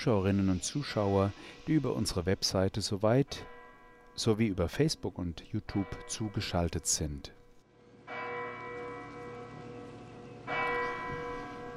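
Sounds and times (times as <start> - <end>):
speech: 0.0 - 3.6, 4.2 - 7.4
large sanctuary church bell striking the hour: 3.2 - 11.7.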